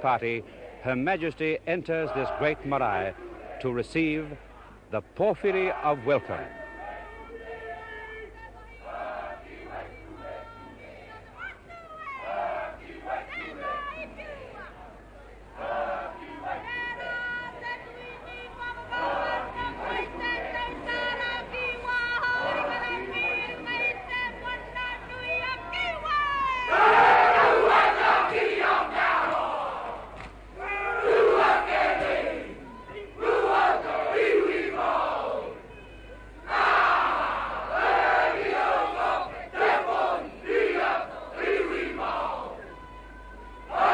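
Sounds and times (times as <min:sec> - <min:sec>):
speech: 0:00.0 - 0:06.6
crowd noise: 0:00.0 - 0:43.9
Māori haka warriors chanting and shouting at a marae welcome for Queen Elizabeth II: 0:00.3 - 0:03.8, 0:08.8 - 0:11.2, 0:12.2 - 0:13.7, 0:15.5 - 0:24.6, 0:26.7 - 0:35.6, 0:36.4 - 0:42.7, 0:43.7 - 0:43.9.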